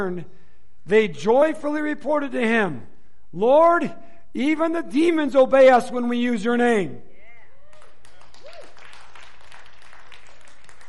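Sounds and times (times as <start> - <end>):
speech: 0.0 - 7.1
church audience applauding: 7.7 - 10.8.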